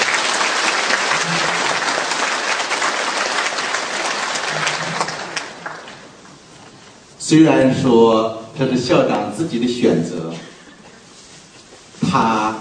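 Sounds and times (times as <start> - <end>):
audience applause: 0.0 - 6.3
speech: 7.3 - 10.5, 12.1 - 12.5.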